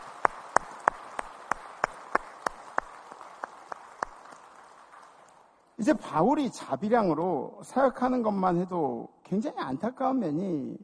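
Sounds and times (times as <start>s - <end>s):
audience clapping in rhythm: 0.0s - 6.4s
speech: 5.8s - 10.8s.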